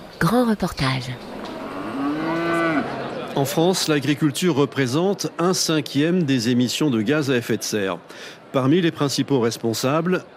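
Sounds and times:
speech: 0.2 - 1.3, 3.4 - 10.3
dairy cow mooing: 1.4 - 3.0.

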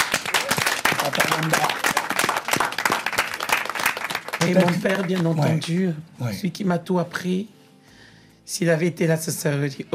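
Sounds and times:
crowd applauding: 0.0 - 5.9
speech: 1.4 - 1.7, 4.4 - 7.6, 8.5 - 9.9.

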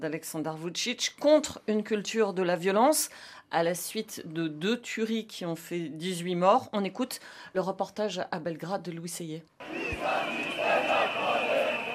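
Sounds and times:
speech: 0.0 - 10.4
dense protest crowd in Belgrade: 9.6 - 11.9.

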